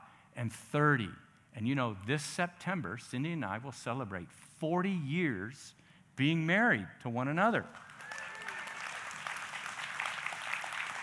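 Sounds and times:
speech: 0.4s - 7.9s
audience applauding: 7.7s - 11.0s.

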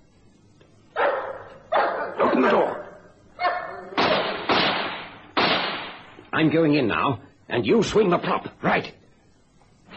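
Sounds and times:
dog barking: 1.0s - 4.4s
speech: 2.4s - 2.8s, 6.4s - 9.0s.

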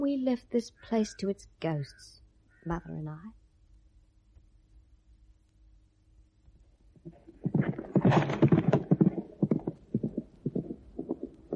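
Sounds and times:
speech: 0.0s - 3.4s
young horse hooves clip-clopping in trotting rhythm: 7.0s - 11.5s.

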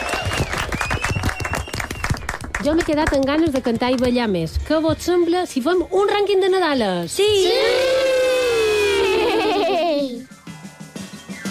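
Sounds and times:
audience applause: 0.0s - 3.1s
speech: 2.6s - 8.0s
laughter: 8.7s - 10.2s.

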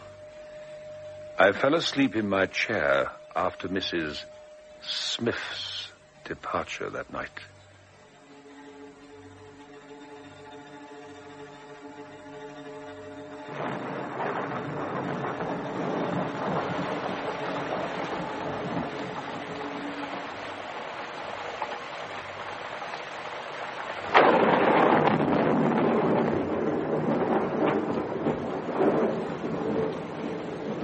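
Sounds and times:
steady rumbling wash of storm noise: 0.0s - 7.3s, 9.6s - 30.8s
speech: 1.4s - 7.5s
thunder from a nearby lightning strike: 13.4s - 21.8s, 24.0s - 30.8s.

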